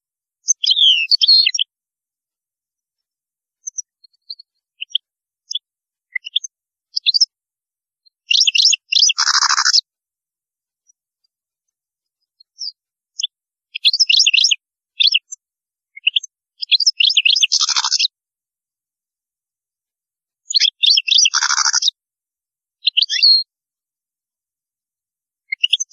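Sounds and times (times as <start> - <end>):
European goldfinch singing: 0.4 - 1.7, 8.2 - 9.8, 12.4 - 18.1, 20.5 - 22.0, 22.8 - 23.5.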